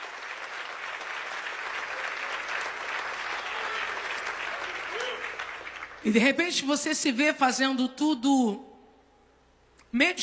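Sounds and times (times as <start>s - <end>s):
audience applause: 0.0s - 6.0s
speech: 6.0s - 8.7s, 9.9s - 10.2s.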